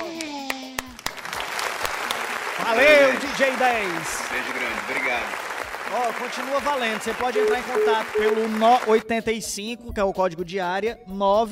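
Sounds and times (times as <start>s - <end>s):
applause: 0.2s - 9.0s
speech: 2.6s - 11.5s.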